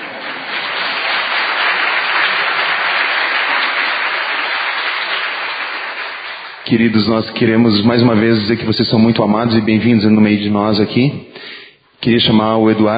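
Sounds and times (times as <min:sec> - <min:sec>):
church congregation applauding a small child: 0:00.0 - 0:07.3
speech: 0:06.7 - 0:12.9.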